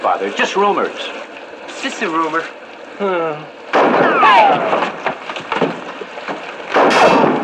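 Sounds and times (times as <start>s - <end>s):
speech: 0.0s - 5.1s
sniper rifle shot hitting a wooden door: 3.8s - 5.0s, 6.7s - 7.4s
scattered clattering and thumps: 3.8s - 7.4s.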